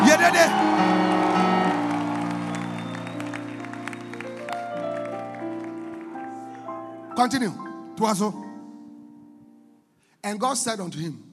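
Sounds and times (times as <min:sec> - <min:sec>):
audience shouting: 0:00.0 - 0:03.1
audience clapping: 0:00.0 - 0:06.9
speech: 0:07.2 - 0:08.4, 0:10.2 - 0:11.3.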